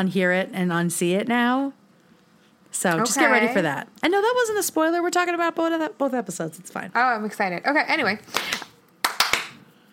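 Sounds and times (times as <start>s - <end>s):
speech: 0.0s - 1.8s, 2.7s - 8.7s
hand claps over the head: 8.3s - 9.6s.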